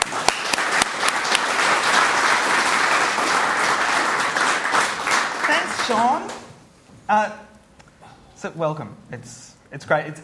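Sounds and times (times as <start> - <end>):
audience applause welcoming panelists: 0.0 - 6.5
speech: 5.9 - 6.4, 7.1 - 7.5, 8.4 - 10.2.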